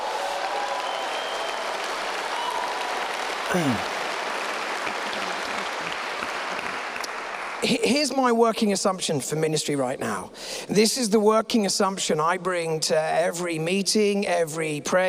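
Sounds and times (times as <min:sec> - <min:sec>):
audience applause: 0:00.0 - 0:08.1
speech: 0:03.5 - 0:04.0, 0:07.6 - 0:15.0.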